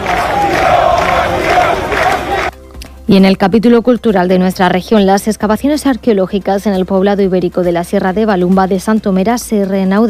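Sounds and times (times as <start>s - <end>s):
crowd shouting asylum in unison: 0.0s - 2.5s
speech: 3.1s - 10.0s.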